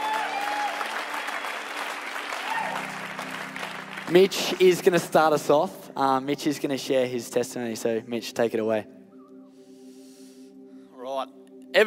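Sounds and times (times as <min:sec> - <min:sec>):
audience clapping: 0:00.0 - 0:05.7
speech: 0:04.1 - 0:09.0.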